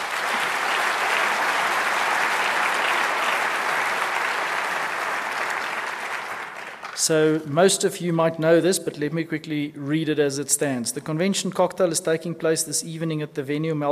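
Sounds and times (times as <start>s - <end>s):
audience applause: 0.0s - 7.1s
speech: 7.1s - 13.9s.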